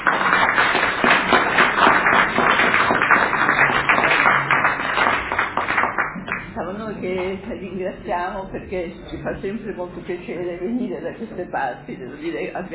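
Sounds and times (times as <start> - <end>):
applause: 0.0 - 6.6
speech: 7.8 - 12.7.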